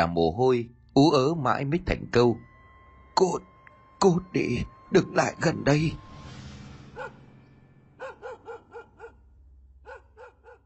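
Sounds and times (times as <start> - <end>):
speech: 0.0 - 2.5, 3.2 - 6.0
dog barking: 7.0 - 7.2, 8.0 - 9.2, 9.8 - 10.6.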